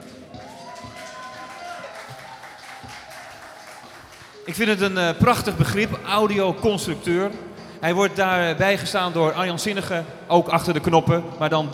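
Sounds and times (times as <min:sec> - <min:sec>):
audience applause: 0:00.0 - 0:04.5
speech: 0:04.5 - 0:11.7.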